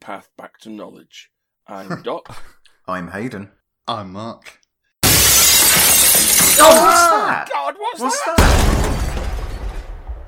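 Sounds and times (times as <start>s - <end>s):
speech: 0.0s - 4.6s, 6.6s - 9.1s
glass dome shattering onto the marble floor of an atrium: 5.0s - 7.2s, 8.4s - 10.1s.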